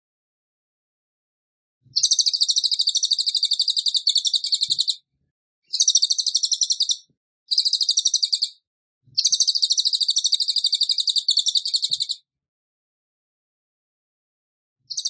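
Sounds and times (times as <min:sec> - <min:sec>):
songbird trilling: 0:02.0 - 0:05.0, 0:05.7 - 0:08.6, 0:09.2 - 0:12.2.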